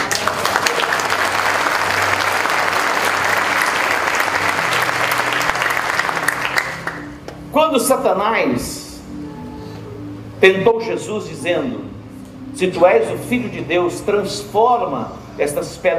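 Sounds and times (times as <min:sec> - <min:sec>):
audience applause: 0:00.0 - 0:07.2
speech: 0:07.7 - 0:08.8, 0:10.4 - 0:11.9, 0:12.6 - 0:15.9.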